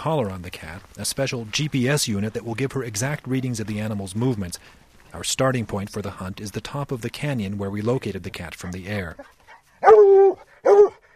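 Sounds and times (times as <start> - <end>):
speech: 0.0 - 10.4
hunting hound baying on scent: 8.6 - 11.1.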